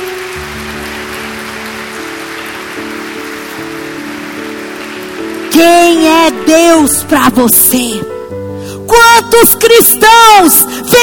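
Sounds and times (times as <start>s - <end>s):
audience applauding: 0.0s - 6.5s
speech: 5.6s - 8.1s, 8.9s - 11.0s.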